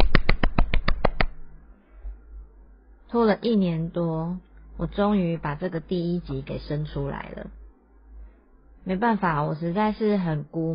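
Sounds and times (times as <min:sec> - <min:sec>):
person clapping hands: 0:00.0 - 0:01.4
speech: 0:03.1 - 0:07.6, 0:08.8 - 0:10.7.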